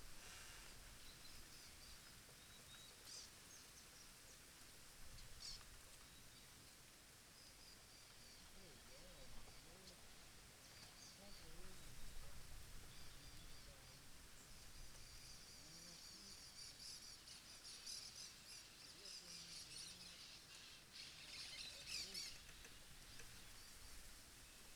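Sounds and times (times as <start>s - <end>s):
birds in rural setting: 0.0s - 24.7s
gentle wind in trees in rural setting: 0.0s - 24.7s.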